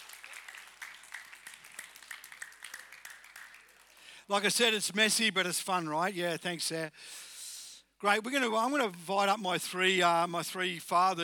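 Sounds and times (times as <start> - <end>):
audience applause: 0.0 - 4.2
speech: 4.3 - 7.3, 8.0 - 11.2.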